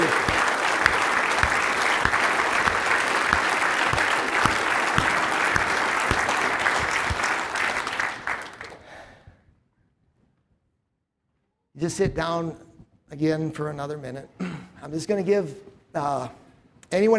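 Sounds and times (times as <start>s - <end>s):
audience applause: 0.0s - 9.1s
speech: 11.9s - 17.1s.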